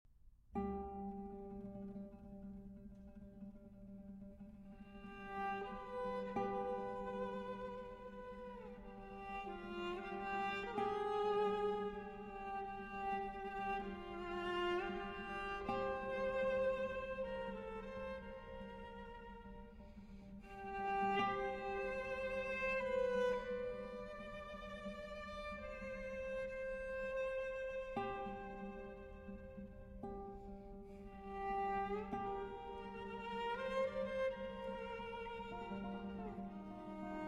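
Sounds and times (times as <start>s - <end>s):
guitar: 0.5s - 37.2s
violin: 0.6s - 37.2s.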